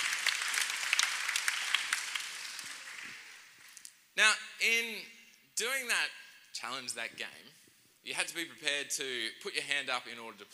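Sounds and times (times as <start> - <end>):
round of applause from a crowd: 0.0 - 3.6
speech: 4.2 - 10.5.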